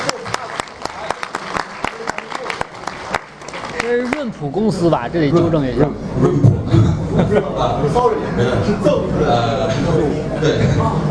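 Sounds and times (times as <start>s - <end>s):
audience applause: 0.0s - 4.5s
speech: 3.9s - 11.0s
laughter: 6.2s - 9.4s.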